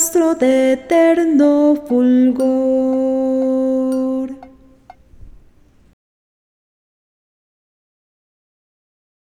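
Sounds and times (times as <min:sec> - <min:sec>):
alto voice: 0:00.0 - 0:05.0.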